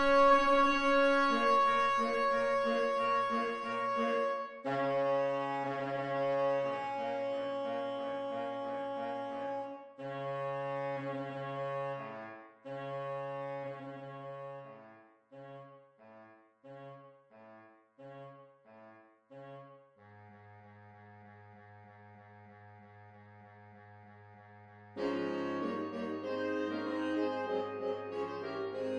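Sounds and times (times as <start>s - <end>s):
saxophone march: 0.0s - 14.8s, 25.0s - 28.9s.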